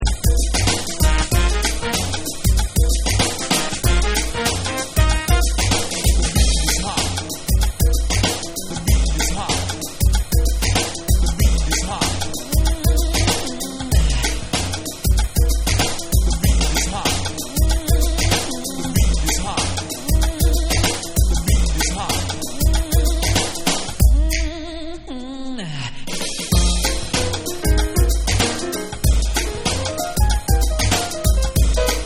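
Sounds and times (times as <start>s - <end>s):
hip hop beat: 0.0s - 24.9s, 26.2s - 32.0s.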